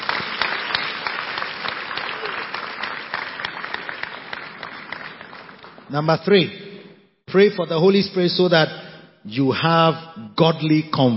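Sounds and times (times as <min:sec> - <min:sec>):
audience clapping: 0:00.0 - 0:06.1
speech: 0:05.9 - 0:06.6, 0:07.3 - 0:11.1.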